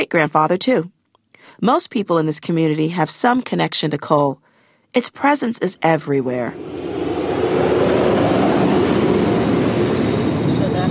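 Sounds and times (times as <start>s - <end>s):
speech: 0.0s - 7.1s
coal truck passing by: 6.5s - 10.5s.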